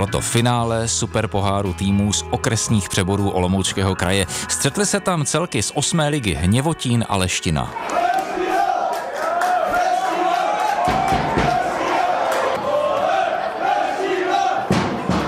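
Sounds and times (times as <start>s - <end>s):
speech: 0.0s - 8.2s
football fans cheering and chanting at a stadium: 7.7s - 15.2s
sharp percussive claps or bangs: 10.8s - 11.8s, 14.6s - 15.2s.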